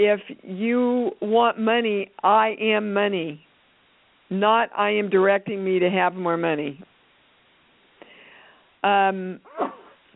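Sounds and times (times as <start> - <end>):
speech: 0.0 - 3.5, 4.3 - 6.9, 8.8 - 9.8
sneeze: 9.4 - 10.1.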